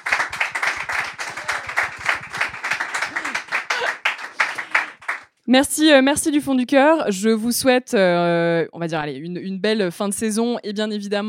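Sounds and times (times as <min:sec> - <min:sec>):
audience applause: 0:00.0 - 0:05.2
speech: 0:05.5 - 0:11.2.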